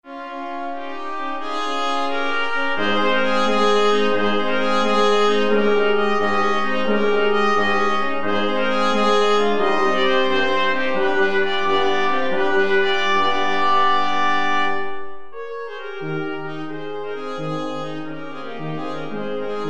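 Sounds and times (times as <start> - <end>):
brass quintet playing: 0.0 - 19.6.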